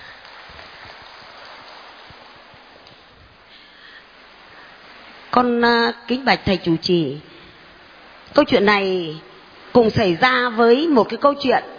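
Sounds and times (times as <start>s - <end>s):
audience applause: 0.0s - 2.8s
speech: 5.4s - 7.3s, 8.4s - 11.7s.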